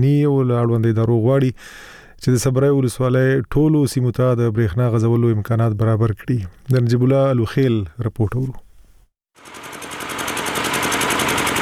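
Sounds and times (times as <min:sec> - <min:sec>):
speech: 0:00.0 - 0:08.6
old electricity generator running loudly in a village bazaar in Khost province: 0:09.4 - 0:11.6.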